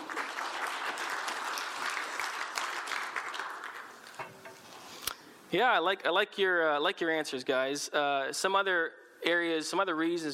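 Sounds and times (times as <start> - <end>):
applause: 0.0 - 4.2
speech: 5.5 - 10.3.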